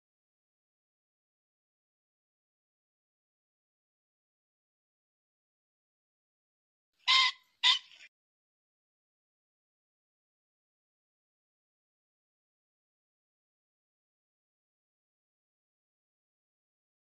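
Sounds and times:
pheasant squawking: 7.0 - 8.1.

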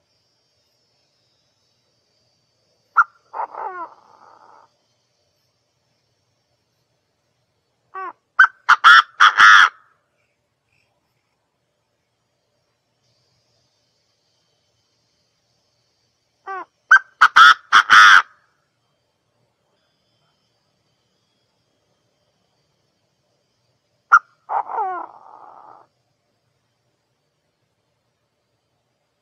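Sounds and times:
partridge calling: 2.9 - 4.7, 8.0 - 9.8, 16.5 - 18.4, 24.1 - 25.9.

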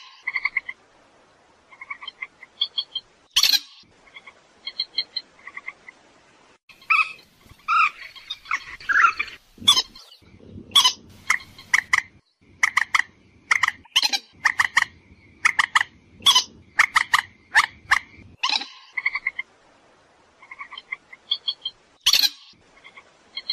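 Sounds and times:
purple swamphen calls: 0.0 - 0.8, 1.6 - 6.0, 6.7 - 19.5, 20.3 - 23.5
low rumble: 9.5 - 11.2.

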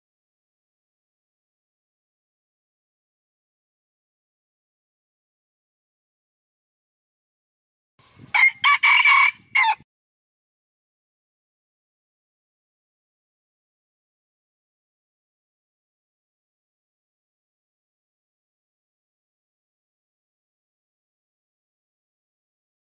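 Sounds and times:
red junglefowl crowing: 8.3 - 9.8.

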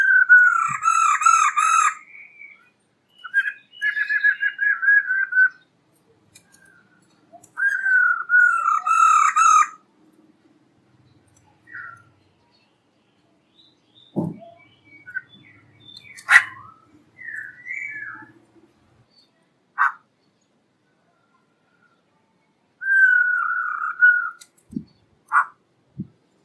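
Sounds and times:
black-throated laughingthrush song of whistles and a harsh burst: 0.0 - 5.7, 7.5 - 9.7, 14.2 - 18.3, 22.8 - 24.9.

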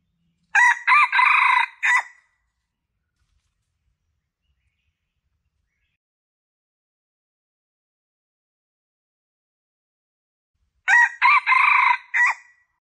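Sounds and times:
Red junglefowl crowing: 0.6 - 2.2, 10.9 - 12.5.

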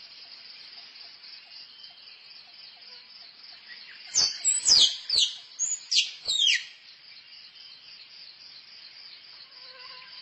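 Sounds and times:
squirrel chirping: 4.2 - 6.7.

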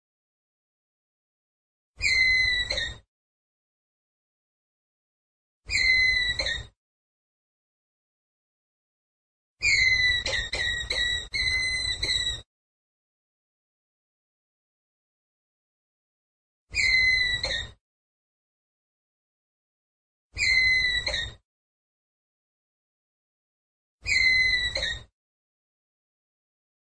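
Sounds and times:
ground squirrel whistled call: 2.0 - 3.0, 5.7 - 6.7, 9.6 - 12.4, 16.8 - 17.8, 20.4 - 21.4, 24.0 - 25.1.

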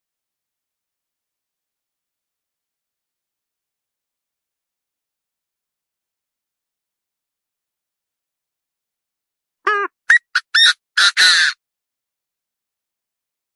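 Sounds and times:
partridge calling: 9.7 - 11.6.

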